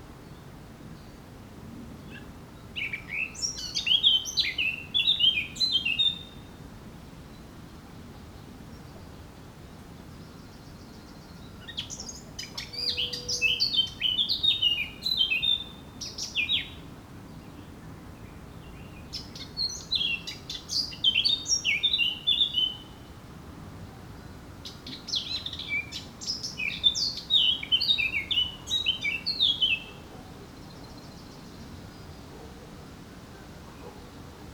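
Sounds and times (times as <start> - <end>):
Eurasian blackcap song: 2.0 - 6.5, 10.0 - 23.1, 23.8 - 32.7.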